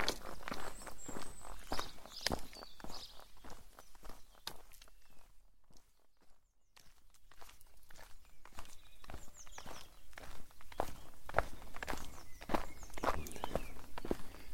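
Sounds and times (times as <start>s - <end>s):
faint birdsong: 0.0s - 14.5s
footsteps crunching along a countryside trail: 0.0s - 14.5s.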